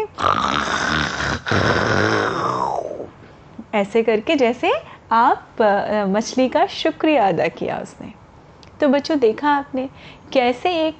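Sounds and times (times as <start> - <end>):
voice imitating a lion's roar: 0.0 - 3.1
speech: 3.8 - 8.2, 8.8 - 10.9.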